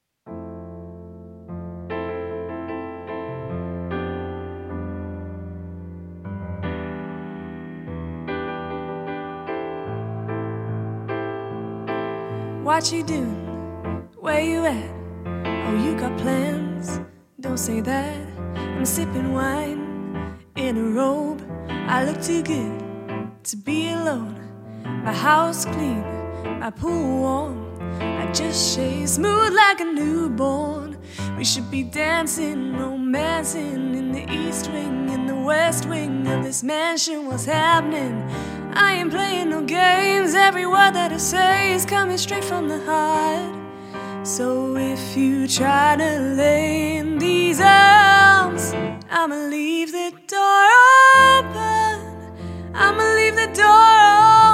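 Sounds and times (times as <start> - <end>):
pianist playing piano: 0.0 - 54.5
singer singing: 12.3 - 54.5.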